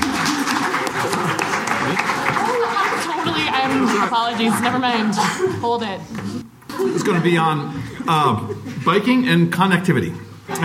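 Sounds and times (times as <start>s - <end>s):
audience applause: 0.0s - 5.1s
laughter: 0.0s - 9.2s, 10.5s - 10.6s
speech: 3.8s - 10.6s.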